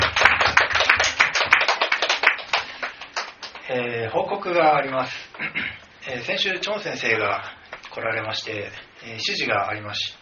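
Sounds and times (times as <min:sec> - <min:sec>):
audience applause: 0:00.0 - 0:03.6
speech: 0:04.1 - 0:10.2.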